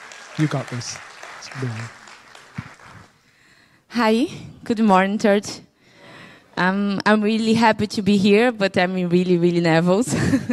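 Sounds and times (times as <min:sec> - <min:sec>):
audience clapping: 0:00.0 - 0:03.4
speech: 0:00.4 - 0:02.0, 0:03.9 - 0:05.7, 0:06.6 - 0:10.5.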